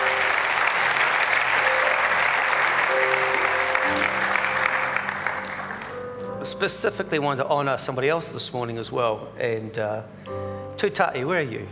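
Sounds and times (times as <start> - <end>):
church congregation applauding visiting guests: 0.0 - 6.2
speech: 6.6 - 11.7.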